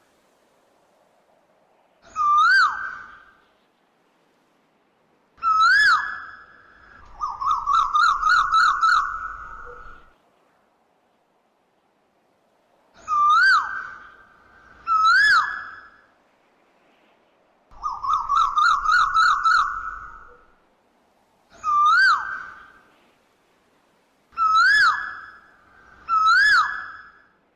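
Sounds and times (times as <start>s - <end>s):
Asian koel swooping and rising-falling whistled calls: 2.0s - 3.4s, 5.4s - 10.1s, 13.0s - 16.0s, 17.8s - 20.5s, 21.5s - 22.8s, 24.3s - 27.4s.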